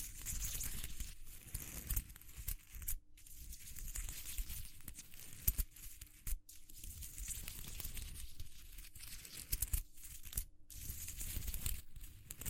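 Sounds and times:
crinkling and scratching textures: 0:00.0 - 0:12.4.

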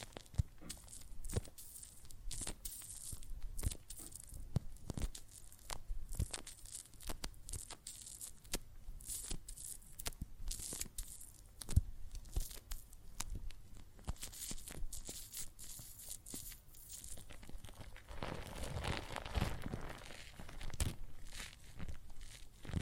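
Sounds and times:
soapy water and foam crackling: 0:00.0 - 0:22.8
bubbling: 0:17.3 - 0:22.8.

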